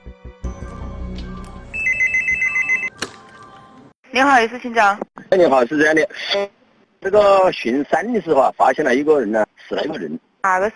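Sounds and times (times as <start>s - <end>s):
telephone ringing with warbling electronic tone: 1.7s - 3.0s
speech: 4.2s - 10.7s.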